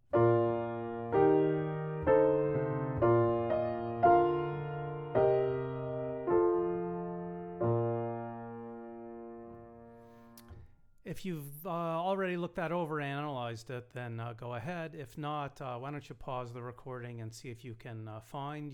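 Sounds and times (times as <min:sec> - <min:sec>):
chorale excerpt played as full chords on a piano-like keyboard: 0:00.0 - 0:10.5
speech: 0:11.2 - 0:18.7.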